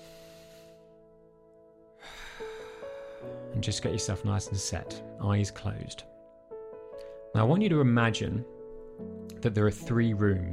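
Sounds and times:
deep breath in through the nose: 0:00.0 - 0:01.0, 0:02.0 - 0:03.4
speech: 0:02.4 - 0:02.6, 0:03.2 - 0:06.2, 0:07.3 - 0:10.5.

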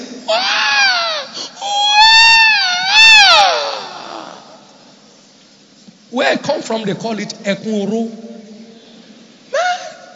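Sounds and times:
voice imitating agonized wailing: 0:00.3 - 0:04.6
speech: 0:06.7 - 0:08.2.

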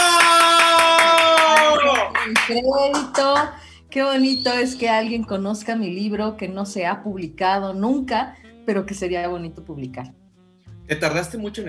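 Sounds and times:
audience applause: 0:00.0 - 0:03.1
speech: 0:02.5 - 0:10.2, 0:10.9 - 0:11.6.

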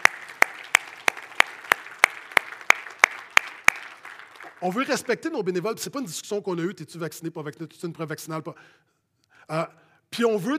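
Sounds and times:
audience clapping in a steady rhythm: 0:00.0 - 0:05.6
speech: 0:04.6 - 0:10.5.

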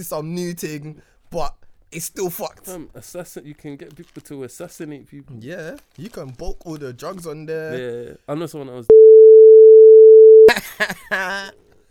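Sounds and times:
speech: 0:00.0 - 0:09.2, 0:10.5 - 0:11.6
beep tone: 0:08.9 - 0:10.5.

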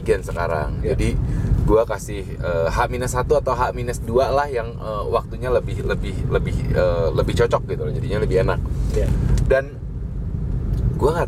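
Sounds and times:
speech: 0:00.0 - 0:09.8, 0:11.0 - 0:11.2
car interior road rumble: 0:00.0 - 0:11.2.

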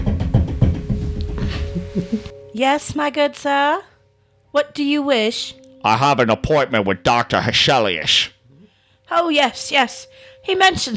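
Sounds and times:
dull low knocks on a door: 0:00.0 - 0:01.6
speech: 0:02.0 - 0:03.9, 0:04.5 - 0:08.3, 0:09.1 - 0:10.9.

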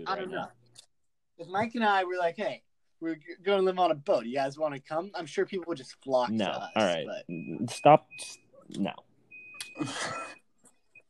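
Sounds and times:
speech: 0:00.0 - 0:00.6, 0:01.4 - 0:09.1, 0:09.8 - 0:10.4
high-pitched electronic beep: 0:06.3 - 0:10.4.

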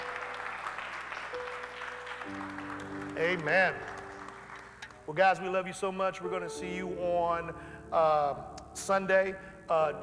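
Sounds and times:
audience hand clap of praise: 0:00.0 - 0:05.1
speech: 0:03.2 - 0:03.9, 0:05.1 - 0:10.0.

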